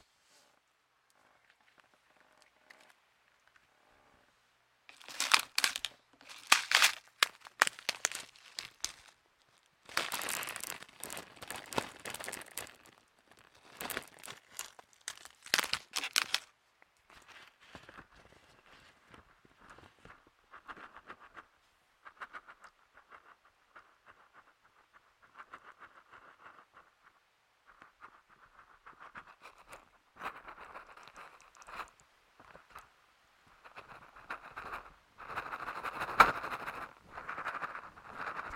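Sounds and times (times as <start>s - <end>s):
squeezing homemade crinkly stress balls: 4.9s - 21.5s, 22.1s - 32.9s, 33.6s - 38.5s
rustling and squishing: 4.9s - 32.9s, 33.6s - 38.5s.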